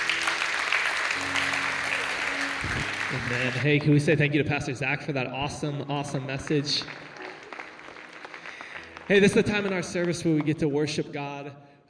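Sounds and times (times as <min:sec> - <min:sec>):
congregation applauding during a church service: 0:00.0 - 0:04.2, 0:05.7 - 0:11.0
speech: 0:03.1 - 0:07.1, 0:09.1 - 0:11.8.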